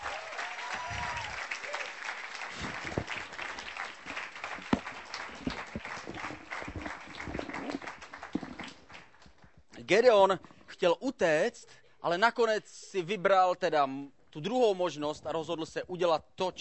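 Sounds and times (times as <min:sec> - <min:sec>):
audience applause: 0:00.0 - 0:09.3
speech: 0:09.9 - 0:16.6.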